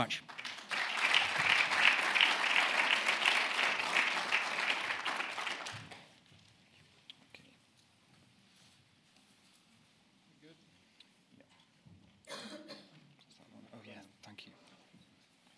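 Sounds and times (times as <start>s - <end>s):
Glasgow audience applauding to welcome a speaker: 0.0s - 6.2s.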